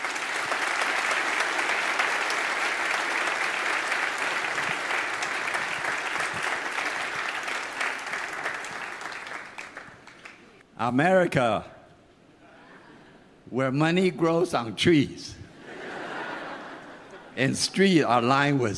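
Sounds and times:
church audience applause welcoming a guest: 0:00.0 - 0:10.6
speech: 0:10.8 - 0:11.7, 0:13.5 - 0:15.4, 0:17.4 - 0:18.7
laughter: 0:15.6 - 0:17.4.

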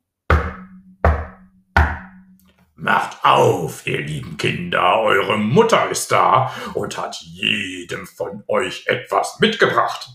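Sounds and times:
heavy knocks on a front door: 0:00.3 - 0:02.2
speech: 0:02.8 - 0:10.1.

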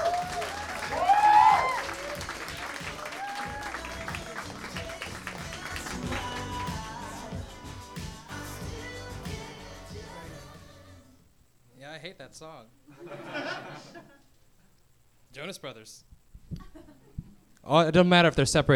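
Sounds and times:
audience applause: 0:00.0 - 0:07.2
speech: 0:12.2 - 0:14.2, 0:15.4 - 0:16.6, 0:17.7 - 0:18.7
laughter: 0:12.9 - 0:14.2.

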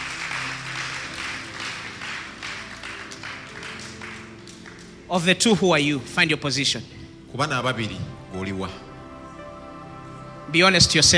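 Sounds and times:
audience clapping: 0:00.0 - 0:05.1
speech: 0:05.1 - 0:08.9, 0:10.5 - 0:11.1.

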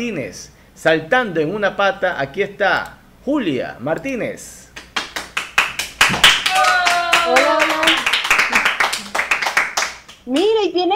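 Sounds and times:
speech: 0:00.0 - 0:04.6, 0:10.3 - 0:10.9
live audience clapping in a steady rhythmic beat: 0:04.7 - 0:10.6.

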